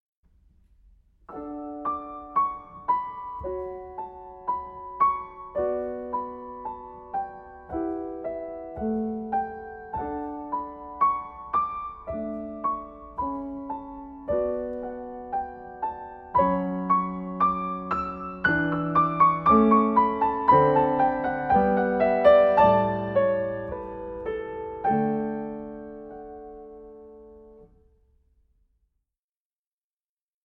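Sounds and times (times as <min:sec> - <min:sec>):
live piano accompaniment: 0:01.3 - 0:27.8.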